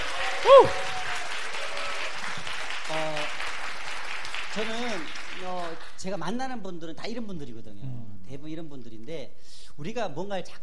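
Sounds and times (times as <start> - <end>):
audience applause: 0.0 - 6.1
speech: 0.4 - 0.9, 4.6 - 10.6.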